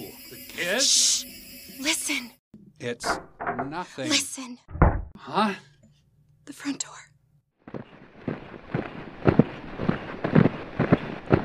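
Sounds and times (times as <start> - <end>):
speech: 0.6 - 1.3, 2.8 - 5.7, 6.5 - 7.0
many heavy booted footsteps tramping in: 7.7 - 11.4.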